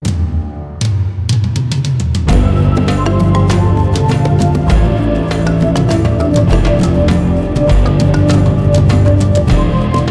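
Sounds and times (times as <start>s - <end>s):
animated jungle theme music: 0.0s - 10.1s.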